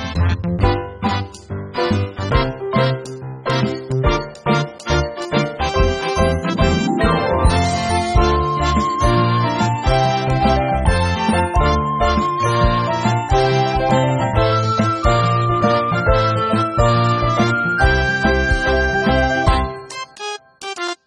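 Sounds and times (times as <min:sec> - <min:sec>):
battle bonus game background music: 0:00.1 - 0:21.0.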